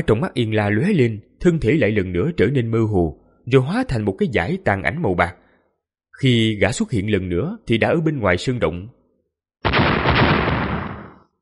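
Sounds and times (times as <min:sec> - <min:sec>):
speech: 0:00.0 - 0:05.4, 0:06.2 - 0:09.0
rocky mountain exploding: 0:09.6 - 0:11.3.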